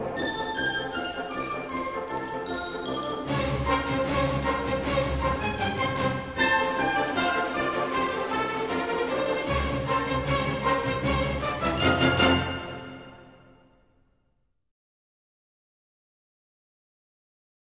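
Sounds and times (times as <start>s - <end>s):
galop dance music: 0.2s - 12.8s.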